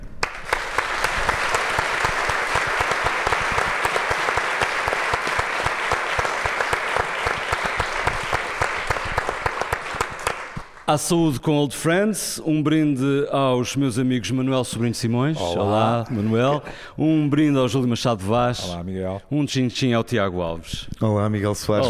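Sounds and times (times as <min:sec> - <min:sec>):
audience applause from a large crowd: 0:00.1 - 0:10.8
speech: 0:10.9 - 0:21.8
laughter: 0:15.3 - 0:16.7.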